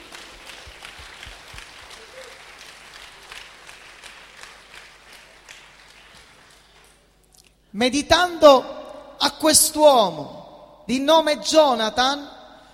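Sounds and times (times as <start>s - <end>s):
audience applause: 0.0s - 7.0s
speech: 7.8s - 12.3s.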